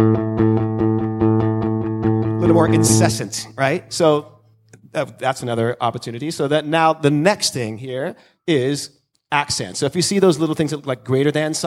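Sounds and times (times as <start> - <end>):
bass guitar played with a pick using only downstrokes: 0.0 - 4.0
speech: 2.6 - 4.3, 4.9 - 11.6.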